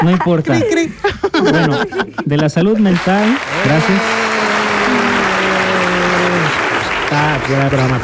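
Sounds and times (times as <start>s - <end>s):
speech: 0.0s - 4.3s, 7.2s - 8.0s
laughter: 0.0s - 7.6s
audience applause: 3.0s - 8.0s.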